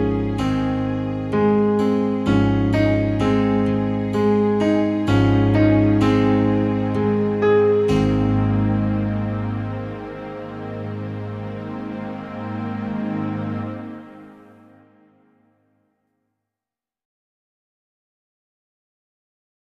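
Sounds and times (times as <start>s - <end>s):
pianos: 0.0s - 15.8s.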